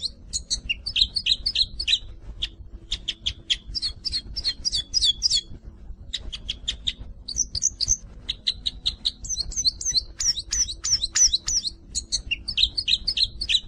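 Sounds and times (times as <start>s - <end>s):
cruza bico bird singing: 0.0s - 13.6s.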